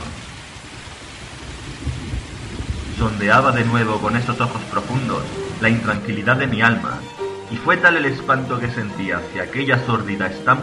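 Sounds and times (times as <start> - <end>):
rain: 0.0 - 10.6
thunder: 1.2 - 3.5
speech: 3.0 - 10.6.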